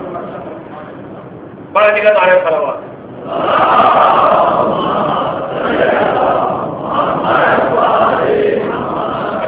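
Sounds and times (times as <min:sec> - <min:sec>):
speech: 0:01.8 - 0:02.9
audience chanting religious slogans at a majlis gathering: 0:03.2 - 0:09.4.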